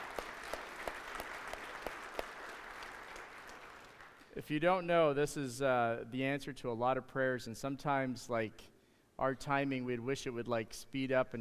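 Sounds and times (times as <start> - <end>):
audience applauding: 0.0 - 4.2
speech: 4.4 - 11.3.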